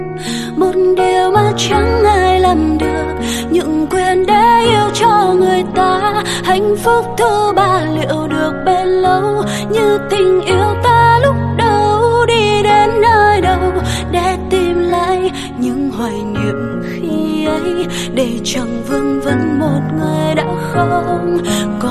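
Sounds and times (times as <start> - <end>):
piano version ringtone: 0.0 - 21.8.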